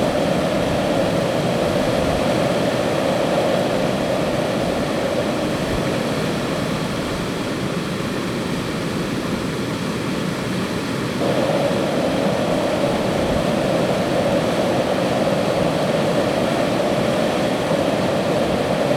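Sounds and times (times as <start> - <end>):
wind: 0.0 - 18.9
white noise: 11.2 - 18.9.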